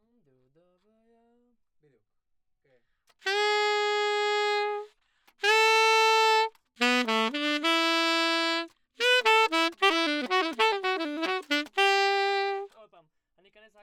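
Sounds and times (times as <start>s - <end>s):
saxophone: 3.2s - 12.7s.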